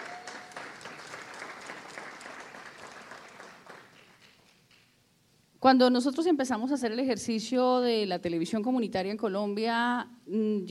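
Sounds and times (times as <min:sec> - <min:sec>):
audience applause: 0:00.0 - 0:04.6
speech: 0:05.6 - 0:10.6.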